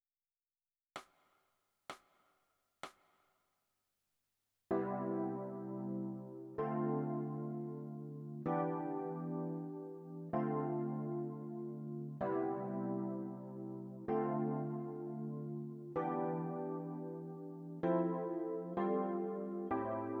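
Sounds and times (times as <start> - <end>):
electric piano: 4.7 - 20.1.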